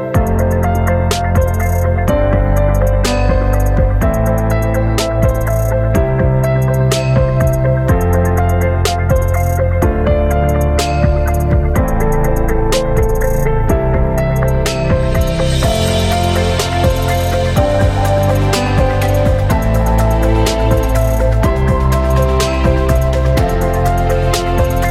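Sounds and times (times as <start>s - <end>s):
cinematic beat: 0.2s - 24.8s.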